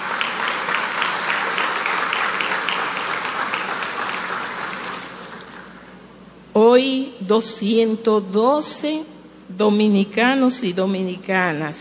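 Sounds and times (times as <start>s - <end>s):
audience applause: 0.0s - 5.9s
speech: 6.7s - 11.7s.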